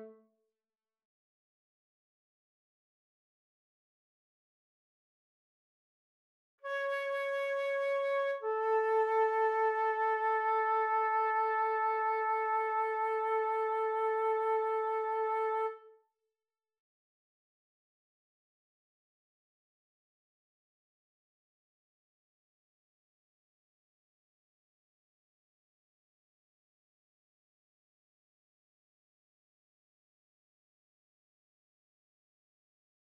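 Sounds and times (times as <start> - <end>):
flute: 6.7 - 15.9.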